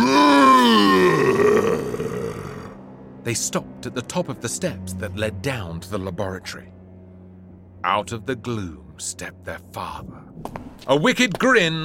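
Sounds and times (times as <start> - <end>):
monster's deafening roar: 0.0 - 2.8
speech: 3.3 - 6.8, 7.8 - 11.8.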